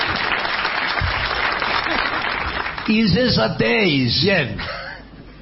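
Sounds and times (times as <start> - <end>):
audience applause: 0.0 - 3.1
speech: 2.9 - 4.8.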